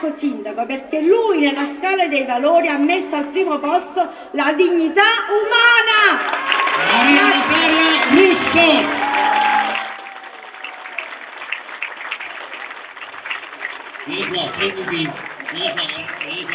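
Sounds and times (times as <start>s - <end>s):
speech: 0.0s - 9.3s, 14.6s - 16.5s
crowd applauding in a town square: 6.2s - 16.5s.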